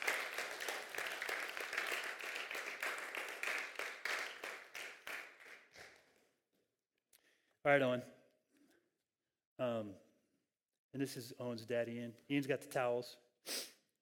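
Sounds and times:
church congregation applauding to welcome a boy before his baptism: 0.0s - 6.1s
speech: 7.6s - 8.2s, 9.6s - 10.0s, 10.9s - 13.6s.

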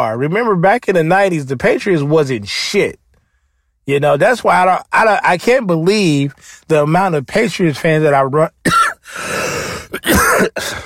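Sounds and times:
speech: 0.0s - 3.0s, 3.9s - 10.8s
person coughing: 8.6s - 10.8s.

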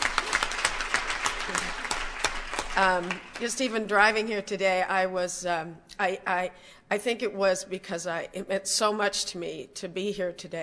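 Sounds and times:
audience applause: 0.0s - 3.6s
speech: 2.8s - 10.6s.

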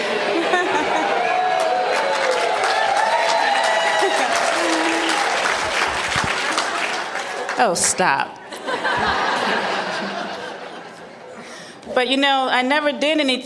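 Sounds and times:
laughter: 0.0s - 1.7s, 3.7s - 7.5s, 8.5s - 11.6s
crowd of fans cheering and applauding: 0.0s - 8.0s
voices whooping and shouting: 0.7s - 5.5s
speech: 7.6s - 9.1s, 12.0s - 13.4s.

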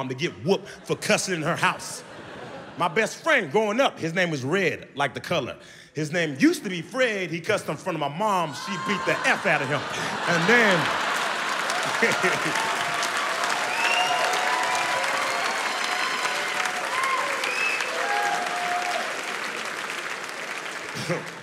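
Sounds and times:
speech: 0.0s - 2.2s, 2.8s - 11.0s, 11.9s - 12.7s
laughter: 0.5s - 3.6s, 8.5s - 14.3s, 20.8s - 21.4s
crowd whoops and voices: 8.4s - 10.8s, 11.5s - 19.5s
audience applause: 8.6s - 21.4s.

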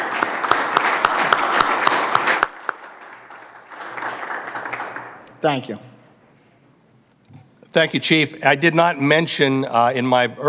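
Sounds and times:
audience applause: 0.0s - 5.3s
speech: 5.4s - 5.9s, 7.7s - 10.4s.

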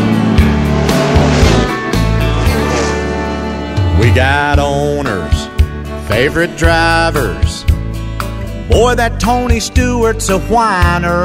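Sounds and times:
race car engine revving: 0.0s - 5.9s
speech: 4.2s - 4.8s, 6.1s - 7.6s, 8.7s - 11.2s.

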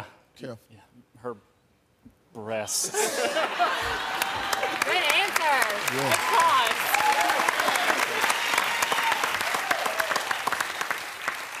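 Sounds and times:
speech: 0.4s - 6.8s
laughter: 2.8s - 5.0s
studio audience applause: 3.5s - 11.5s.

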